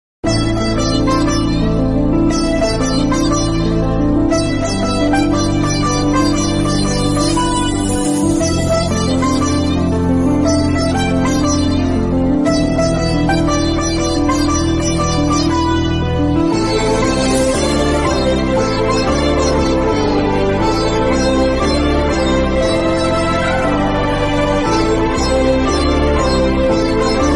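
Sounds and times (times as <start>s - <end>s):
Indian love tune Telugu movie background music: 0.2s - 27.3s.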